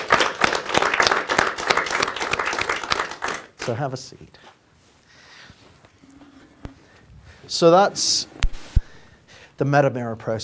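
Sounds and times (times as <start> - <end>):
audience applause: 0.0 - 3.8
speech: 3.7 - 4.6, 7.5 - 8.4, 9.6 - 10.4.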